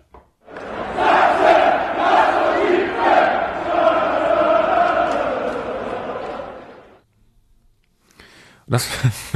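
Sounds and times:
football fans in the stands in Saxony chanting a vaccination call: 0.4s - 7.0s
speech: 8.7s - 9.3s.

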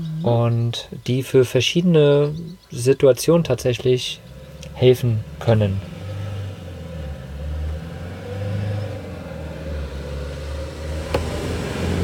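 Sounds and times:
speech: 0.0s - 5.9s
car driving past outside the van: 4.2s - 12.0s.

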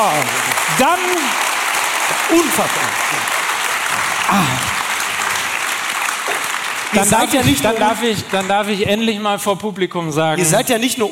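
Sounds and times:
speech: 0.0s - 1.5s, 2.1s - 3.4s, 4.3s - 4.7s, 6.9s - 11.1s
crowd clapping loudly: 0.0s - 9.3s.

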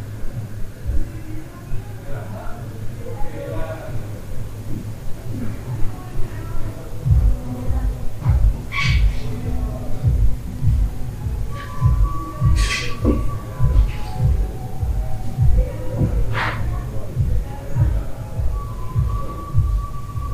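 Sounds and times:
faint voices: 0.0s - 20.3s
low hum in a hostel room: 0.0s - 20.3s
high whistling tones: 3.0s - 20.3s
soft thumping pulses: 4.7s - 20.3s.

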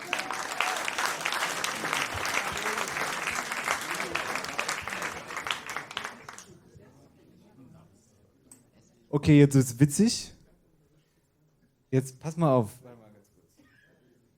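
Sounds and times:
audience applause at a comedy show: 0.0s - 6.6s
speech: 9.2s - 10.4s, 11.9s - 12.9s.

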